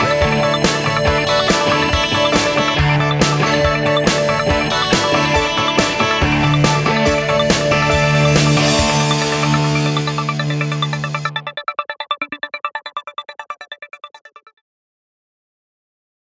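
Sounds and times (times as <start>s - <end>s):
80s pop music: 0.0s - 11.6s.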